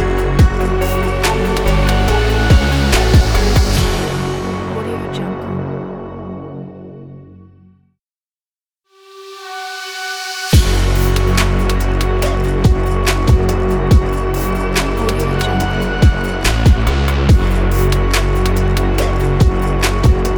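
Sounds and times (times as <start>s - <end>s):
experimental dubstep: 0.0s - 5.6s, 10.5s - 20.3s.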